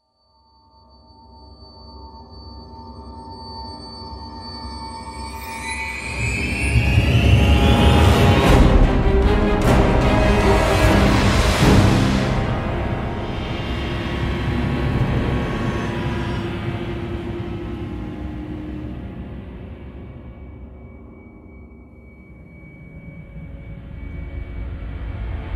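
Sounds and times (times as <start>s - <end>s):
scary noise: 5.4s - 25.5s.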